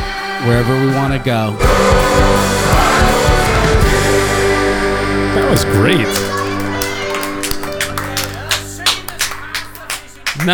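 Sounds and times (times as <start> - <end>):
speech: 0.4 - 2.6, 5.4 - 6.3
small group cheering: 1.6 - 10.5
slow hand claps: 6.0 - 10.5.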